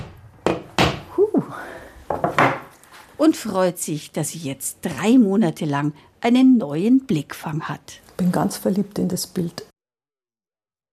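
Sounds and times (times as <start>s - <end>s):
hammering a nail into a wall: 0.0s - 1.0s
speech: 3.2s - 9.7s.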